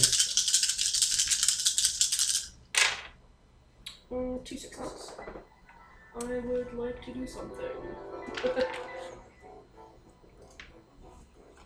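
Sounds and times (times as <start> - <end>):
dice rattling as they are rolled: 0.0 - 3.2
speech: 4.4 - 8.9.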